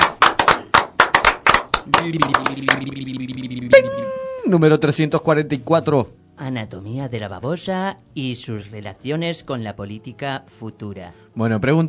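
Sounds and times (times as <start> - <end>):
applause: 0.0 - 2.9
speech: 1.9 - 11.8
steady humming voice-like tone: 2.2 - 4.6.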